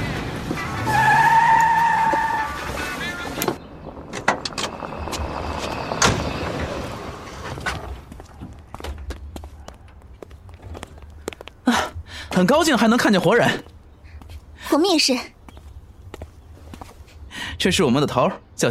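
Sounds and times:
car approaching: 0.0 - 9.6
car horn: 0.6 - 3.6
speech: 12.4 - 13.7, 14.7 - 15.4, 17.6 - 18.6.

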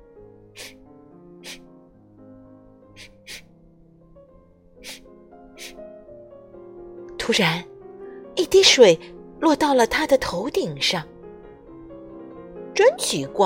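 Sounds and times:
soft musical backdrop: 0.0 - 13.4
breathy sniffs: 0.5 - 1.7, 3.0 - 3.6, 4.8 - 5.9
speech: 7.3 - 7.7, 8.5 - 11.1, 12.8 - 13.4.

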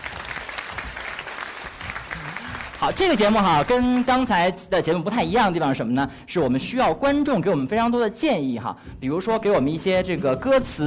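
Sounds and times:
audience applause: 0.0 - 4.2
speech: 2.8 - 10.8.

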